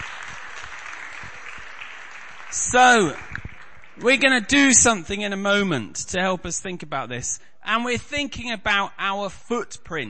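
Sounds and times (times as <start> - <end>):
audience round of applause: 0.0 - 4.4
speech: 2.5 - 3.2, 4.0 - 10.0.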